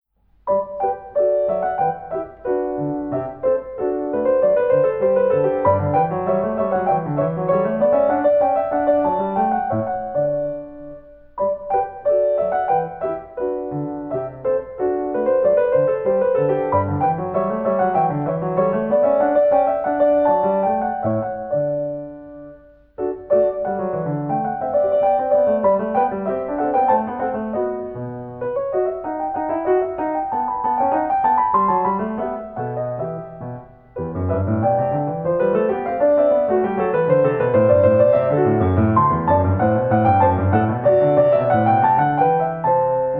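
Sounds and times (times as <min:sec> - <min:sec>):
baroque gavotte: 0:00.0 - 0:43.1.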